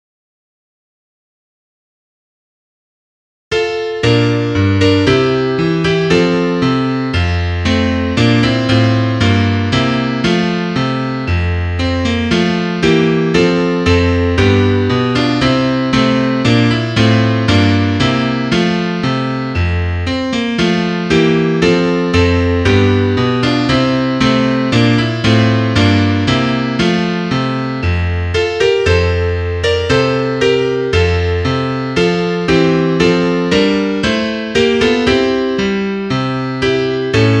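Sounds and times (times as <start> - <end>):
piano: 3.5 - 37.3.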